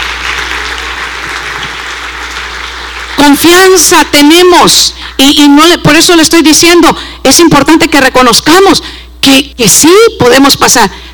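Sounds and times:
audience clapping: 0.0 - 3.7
speech: 3.2 - 11.0.

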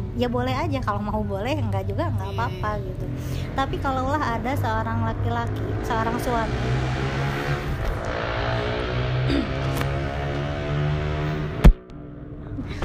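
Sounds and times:
speech: 0.2 - 7.5
motorcycles passing by outside: 1.5 - 11.7.

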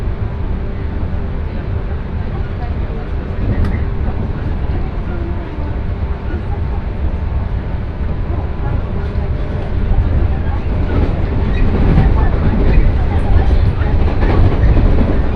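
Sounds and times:
train rumble on the Sanyo Main Line: 0.0 - 15.3
click: 3.5 - 3.8.

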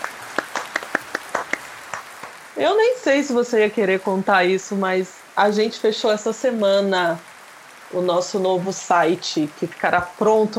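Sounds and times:
applause: 0.0 - 2.6
speech: 2.6 - 7.3, 7.9 - 10.5.

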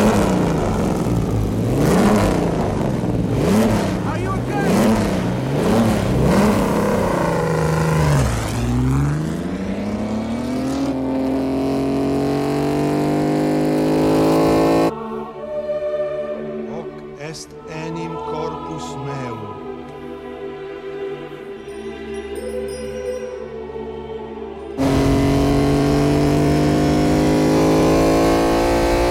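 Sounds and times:
car engines revving: 0.0 - 15.8, 24.8 - 29.0
person speaking: 4.0 - 4.8, 16.7 - 19.6.

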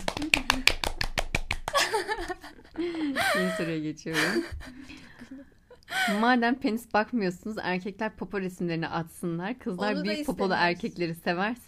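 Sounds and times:
hand claps: 0.0 - 2.2
people laughing: 1.7 - 5.5
speech: 2.1 - 5.0, 5.9 - 11.6.

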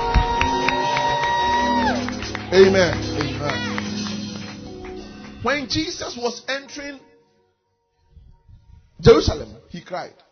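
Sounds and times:
audience clapping: 0.0 - 6.0
speech: 2.5 - 3.0, 5.4 - 7.1, 9.0 - 10.3.

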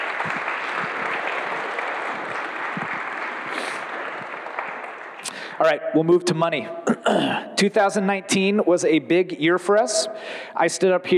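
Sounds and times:
audience applause: 0.0 - 5.6
speech: 5.6 - 11.1.

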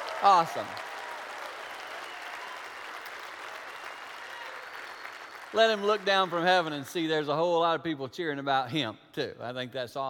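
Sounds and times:
audience clapping: 0.0 - 7.2
speech: 0.2 - 0.9, 5.5 - 10.0.

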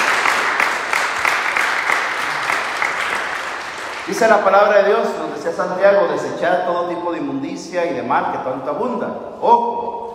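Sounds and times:
applause: 0.0 - 5.1
speech: 4.1 - 10.0.

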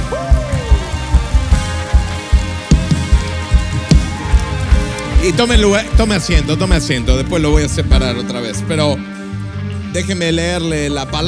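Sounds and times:
audience applause: 0.0 - 8.2
speech: 5.2 - 9.1, 10.0 - 11.2.

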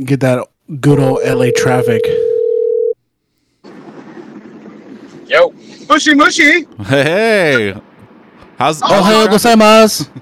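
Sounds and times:
speech: 0.0 - 2.3, 5.3 - 7.9, 8.6 - 10.2
telephone line noise: 1.2 - 3.0
telephone dial tone while placing call: 1.6 - 3.0.

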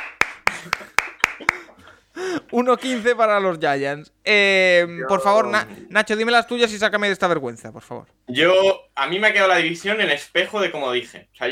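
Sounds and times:
applause: 0.0 - 1.7
laughter: 0.5 - 2.0
speech: 2.2 - 11.5.

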